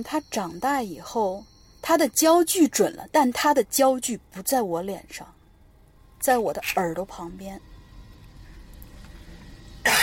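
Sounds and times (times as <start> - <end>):
speech: 0.0 - 5.4, 6.2 - 7.7
low hum: 0.0 - 10.0
cough: 9.8 - 10.0.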